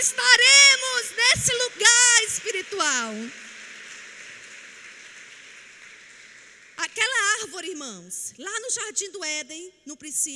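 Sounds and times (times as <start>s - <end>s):
speech: 0.0s - 3.5s, 7.4s - 10.3s
audience applause: 0.0s - 7.1s.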